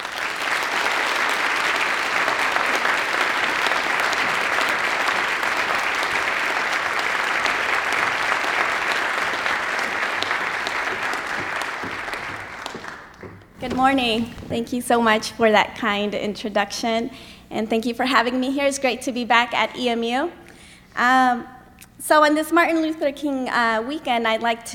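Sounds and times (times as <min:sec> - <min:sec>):
audience applause welcoming a speaker at a university morning event: 0:00.0 - 0:13.5
speech: 0:13.8 - 0:20.4, 0:21.0 - 0:24.7.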